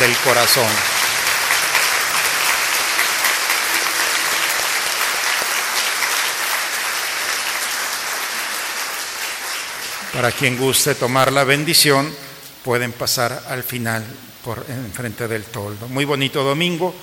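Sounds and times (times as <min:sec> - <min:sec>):
crowd applause: 0:00.0 - 0:10.9
speech: 0:00.1 - 0:00.9, 0:10.2 - 0:17.0.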